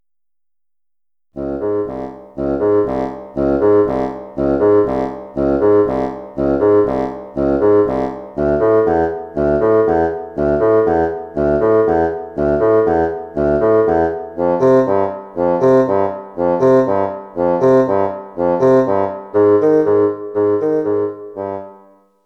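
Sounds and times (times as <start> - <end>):
bassoon: 1.4 - 22.0.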